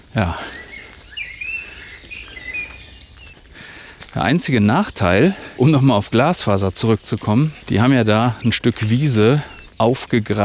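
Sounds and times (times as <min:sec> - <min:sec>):
speech: 0:00.0 - 0:00.6, 0:04.2 - 0:10.4
birds singing in the forest: 0:00.0 - 0:10.4
steady hiss of noise: 0:00.0 - 0:10.4.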